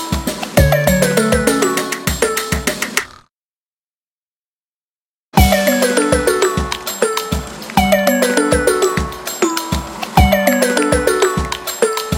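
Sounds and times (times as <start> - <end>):
music practice track at 100 BPM: 0.5 - 2.6, 5.4 - 12.1.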